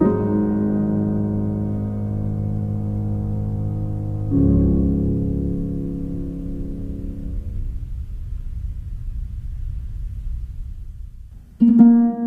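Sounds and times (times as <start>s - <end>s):
piano lullaby in D-flat: 0.0s - 7.8s, 11.6s - 12.2s.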